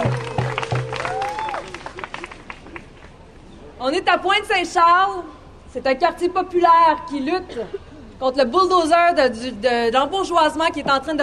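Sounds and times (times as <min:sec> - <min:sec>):
audience applause: 0:00.0 - 0:03.0
speech: 0:03.9 - 0:11.2.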